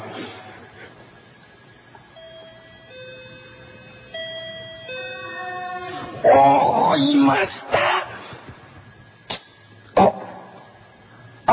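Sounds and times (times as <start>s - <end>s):
house intercom doorbell chime: 2.2s - 5.9s
speech: 6.2s - 7.9s.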